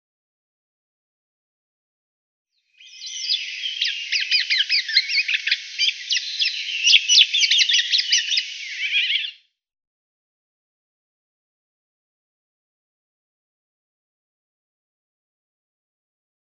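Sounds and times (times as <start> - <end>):
Eurasian golden oriole singing: 2.6 - 9.5.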